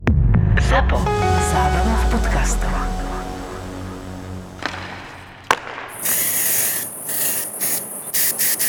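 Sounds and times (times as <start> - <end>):
low hum: 0.0 - 7.0
speech: 0.7 - 3.1
crickets chirping: 5.9 - 8.6.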